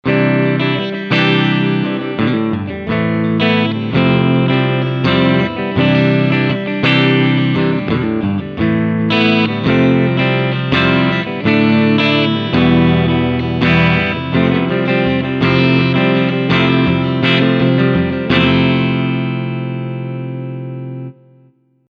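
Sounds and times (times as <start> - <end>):
electric guitar strumming on middle Steg pickup: 0.0 - 21.5.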